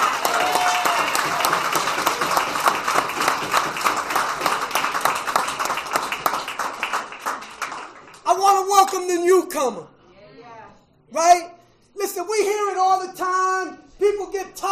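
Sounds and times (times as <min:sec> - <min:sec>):
audience applauding the event organisers: 0:00.0 - 0:08.4
speech: 0:09.5 - 0:10.0, 0:11.1 - 0:11.5, 0:12.2 - 0:14.7.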